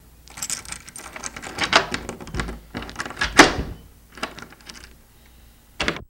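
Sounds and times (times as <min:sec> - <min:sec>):
keys into door lock: 0:00.3 - 0:05.0.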